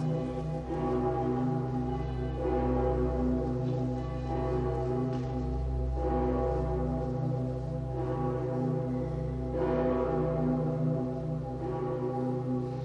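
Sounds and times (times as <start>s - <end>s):
cathedral bells ringing in full peal with the Petersglocke: 0.0s - 12.8s.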